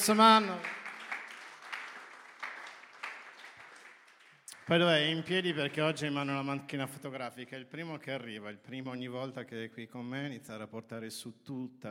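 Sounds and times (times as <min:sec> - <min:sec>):
speech: 0:00.0 - 0:00.8, 0:04.7 - 0:11.8
small crowd applause: 0:00.0 - 0:06.5.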